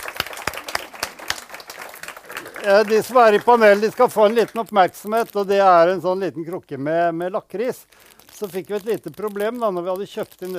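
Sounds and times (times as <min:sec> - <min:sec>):
audience applause: 0:00.0 - 0:04.7
speech: 0:02.6 - 0:10.5.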